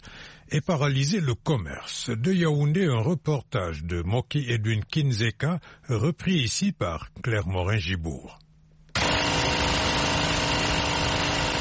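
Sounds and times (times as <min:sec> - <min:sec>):
speech: 0:00.5 - 0:08.4
generator powering a bakery's flour mill in the Obili district of Yaoundé: 0:09.0 - 0:11.5.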